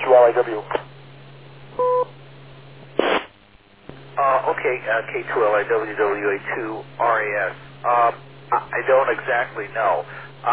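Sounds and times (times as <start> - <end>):
low constant hum: 0.0 - 10.5
speech: 0.1 - 0.9, 4.7 - 10.5
two-tone radio beep: 1.8 - 2.1
static hiss: 2.8 - 10.5.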